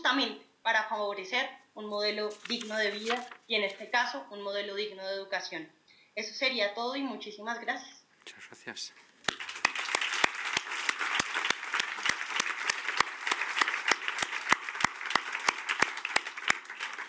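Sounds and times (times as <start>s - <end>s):
speech: 0.1s - 9.4s
audience applause: 9.2s - 17.0s
sharp individual claps: 9.2s - 17.0s.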